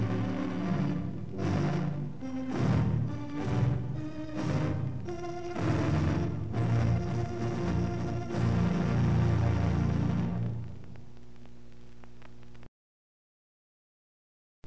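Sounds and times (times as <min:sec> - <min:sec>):
gigantic pipe organ playing: 0:00.0 - 0:10.7.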